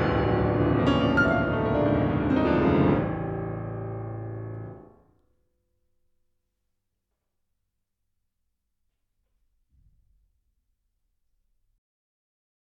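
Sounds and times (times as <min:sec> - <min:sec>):
classical music: 0:00.0 - 0:05.1.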